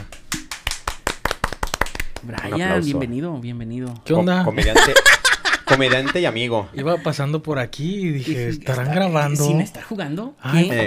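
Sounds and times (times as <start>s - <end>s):
handclaps: 0.0s - 2.5s
speech: 2.2s - 10.8s
laughter: 4.6s - 7.2s.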